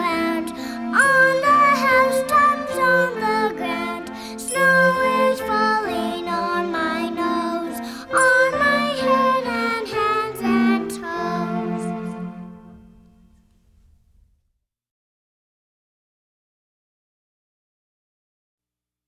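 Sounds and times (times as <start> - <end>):
song: 0.2 - 13.3.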